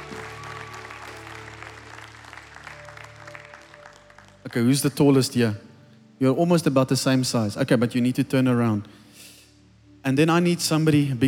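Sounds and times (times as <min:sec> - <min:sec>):
audience applause: 0:00.0 - 0:04.6
speech: 0:04.5 - 0:09.0, 0:10.0 - 0:11.2.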